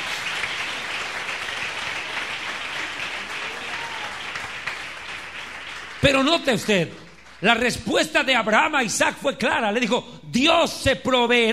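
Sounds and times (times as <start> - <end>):
crowd applause: 0.0 - 7.6
speech: 6.0 - 11.5.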